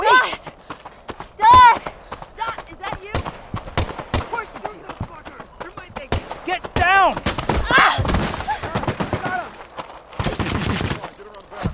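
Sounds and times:
voices shouting: 0.0 - 9.7
guards opening fire in a rapid fusillade: 3.1 - 4.7, 6.1 - 11.1.

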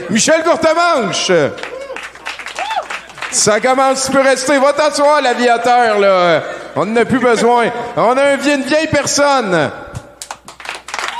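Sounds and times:
speech: 0.1 - 1.7, 3.4 - 9.8
audience applause: 1.6 - 4.3, 10.2 - 11.1.

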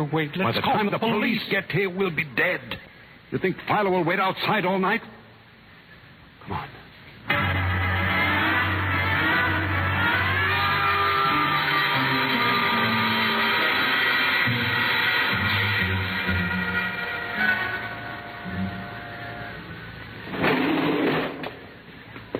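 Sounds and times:
speech: 0.0 - 5.2, 6.5 - 6.8
service elevator descending to basement, mechanical drone and whine: 7.3 - 20.5.

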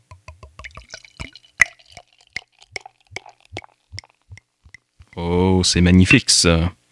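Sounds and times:
foamy bottled drink poured into a glass: 0.0 - 5.3
speech: 5.2 - 6.8.

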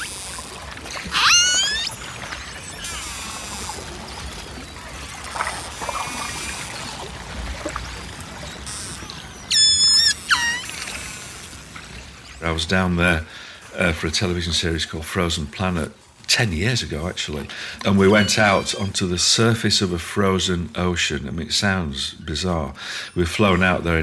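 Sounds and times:
pod of orcas calling underwater: 0.0 - 12.4, 17.8 - 21.3
constant underwater hiss and low rumble: 0.0 - 24.0
speech: 12.6 - 24.0.

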